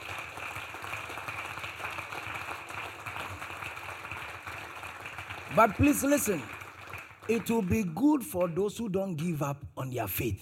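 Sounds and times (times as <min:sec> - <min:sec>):
audience clapping: 0:00.0 - 0:09.3
speech: 0:05.6 - 0:06.6, 0:07.3 - 0:10.4.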